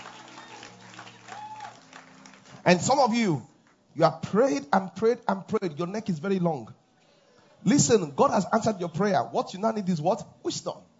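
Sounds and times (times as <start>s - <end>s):
audience clapping: 0.0s - 3.0s
speech: 2.6s - 6.8s, 7.6s - 10.9s.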